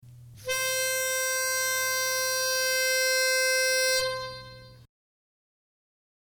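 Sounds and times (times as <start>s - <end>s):
chorus lead melody: 0.4s - 4.8s.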